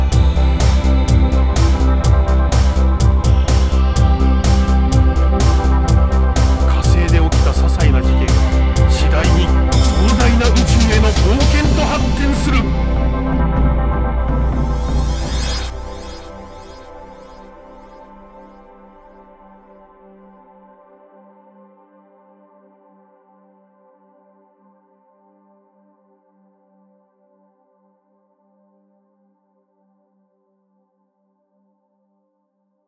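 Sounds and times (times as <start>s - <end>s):
synthwave music: 0.0s - 19.8s.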